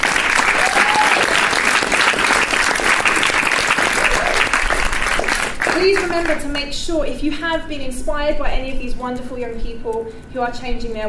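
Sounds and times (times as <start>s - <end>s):
audience round of applause: 0.0s - 6.5s
speech: 6.2s - 11.0s.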